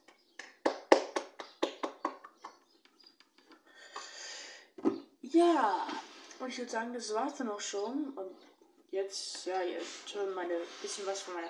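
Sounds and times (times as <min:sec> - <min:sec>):
hands clapping: 0:00.0 - 0:04.1
speech: 0:05.3 - 0:08.4, 0:09.0 - 0:11.4.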